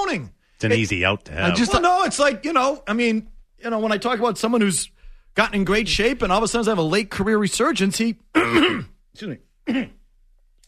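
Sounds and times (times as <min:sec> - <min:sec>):
speech: 0:00.0 - 0:10.0
person clearing their throat with something caught in it: 0:08.3 - 0:09.0, 0:09.6 - 0:10.1.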